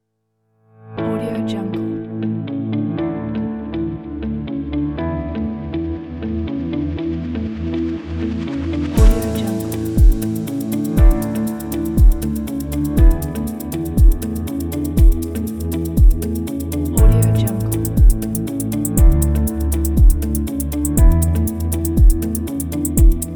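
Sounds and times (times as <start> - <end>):
corporate music: 1.0 - 23.3.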